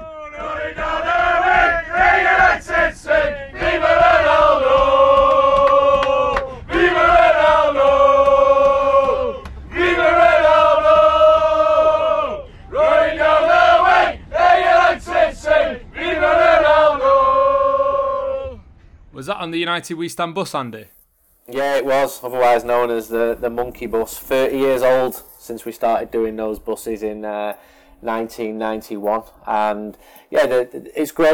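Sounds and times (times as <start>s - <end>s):
football fans singing chants: 0.0s - 18.6s
speech: 19.5s - 31.3s.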